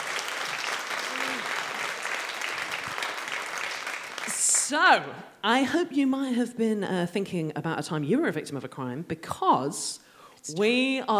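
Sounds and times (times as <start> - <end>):
audience applause in a theatre: 0.0 - 4.6
person cheering: 1.0 - 1.8
speech: 4.7 - 11.1.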